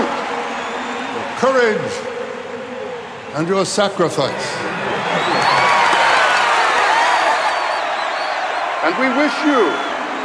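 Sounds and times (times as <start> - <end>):
crowd applause at the Hunger Games: 0.0 - 1.5, 4.2 - 10.2
crowd cheering at the Hunger Games: 0.0 - 10.2
speech: 1.4 - 2.2, 3.4 - 5.7, 8.8 - 9.9.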